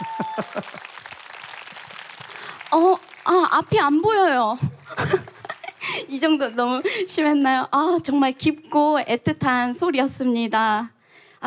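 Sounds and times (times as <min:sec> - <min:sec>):
audience applause: 0:00.0 - 0:03.9, 0:04.9 - 0:07.1
speech: 0:00.4 - 0:01.0, 0:02.7 - 0:05.3, 0:06.1 - 0:11.4.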